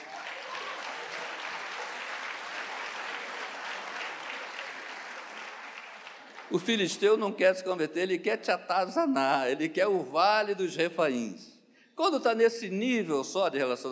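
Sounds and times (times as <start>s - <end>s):
audience applause: 0.0s - 6.9s
speech: 6.5s - 13.9s.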